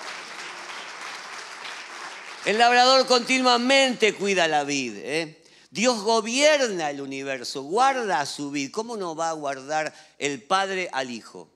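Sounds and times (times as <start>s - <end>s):
audience applause: 0.0s - 3.2s
speech: 2.4s - 11.5s.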